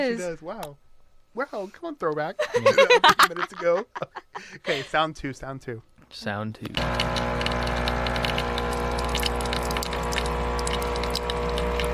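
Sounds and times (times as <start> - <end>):
speech: 0.0 - 7.5
laughter: 2.4 - 5.0
coffee maker brewing: 6.7 - 11.9.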